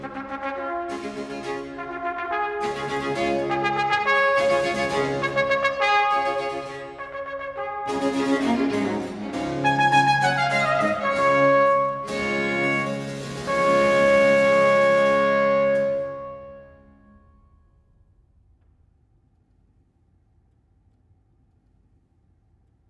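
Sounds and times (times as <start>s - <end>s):
trumpet sonata with strings and basso continuo in D major presto: 0.0s - 17.3s.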